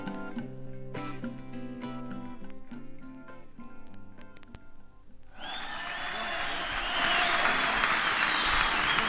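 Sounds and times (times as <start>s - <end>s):
audience applause after a song: 5.3s - 9.0s.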